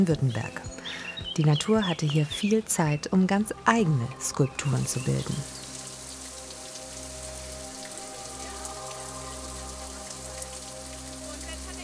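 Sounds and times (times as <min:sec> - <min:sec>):
speech: 0:00.0 - 0:05.6
water rushing down a limestone tufa waterfall: 0:03.7 - 0:11.8.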